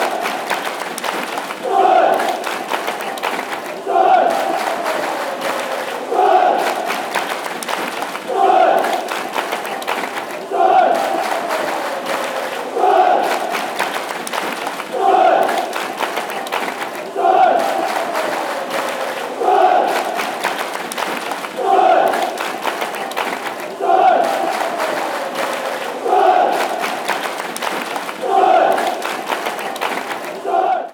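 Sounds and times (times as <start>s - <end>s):
chanting: 0.0s - 30.9s.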